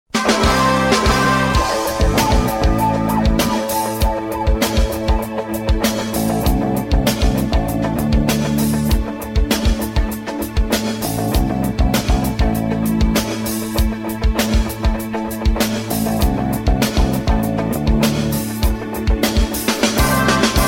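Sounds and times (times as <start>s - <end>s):
bass: 0.1s - 20.6s.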